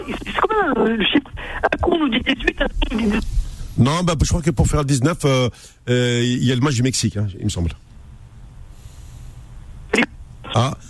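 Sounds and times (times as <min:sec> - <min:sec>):
crackling phone line static: 0:00.0 - 0:05.0, 0:05.9 - 0:10.8
speech: 0:00.0 - 0:07.9, 0:10.0 - 0:10.8
low steady hum on a phone line: 0:00.0 - 0:10.8.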